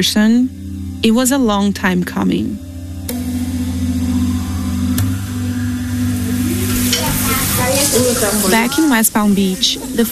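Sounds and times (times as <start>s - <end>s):
speech: 0.0s - 3.5s, 7.9s - 10.0s
food sizzling in a pan: 3.6s - 10.0s.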